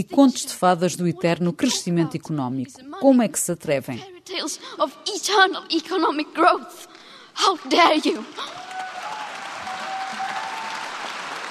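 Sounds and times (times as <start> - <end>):
speech: 0.0 - 8.6
world leaders applauding: 7.9 - 11.4.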